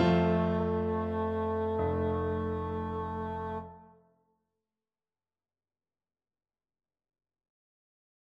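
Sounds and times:
four bassoons playing a round: 0.0 - 3.9.

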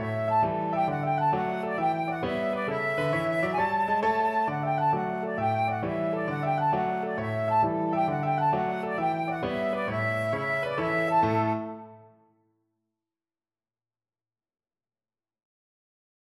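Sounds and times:
flute playing a kolo dance tune: 0.0 - 12.3.

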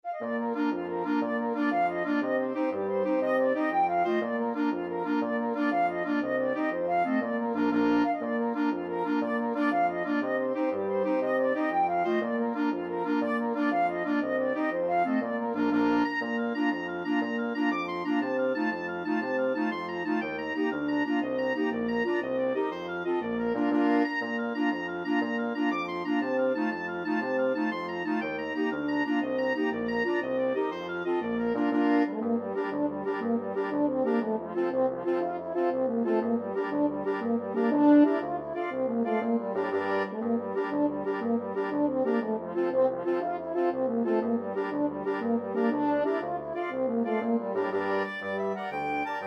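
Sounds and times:
Irish jig medley by six-player mixed ensemble: 0.2 - 49.2.

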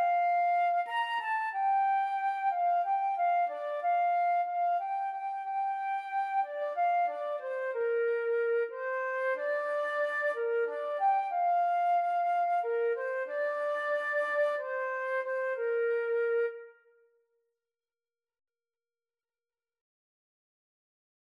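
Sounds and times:
two flutes playing karaoke backing: 0.0 - 16.8.

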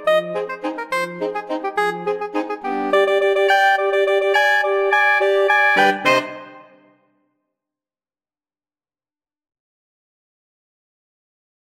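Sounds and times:
saxophone ensemble: 0.0 - 6.8.

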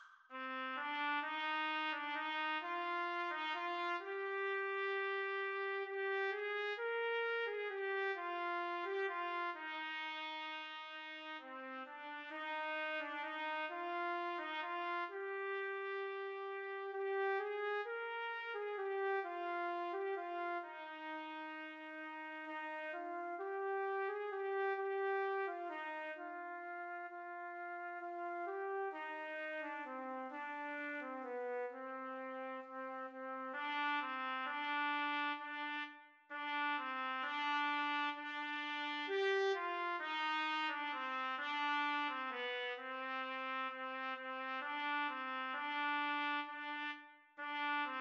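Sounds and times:
trumpet duet: 0.3 - 47.9.

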